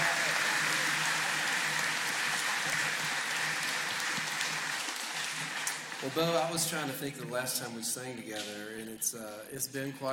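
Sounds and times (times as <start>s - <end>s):
audience applause: 0.0s - 7.4s
speech: 6.0s - 10.1s.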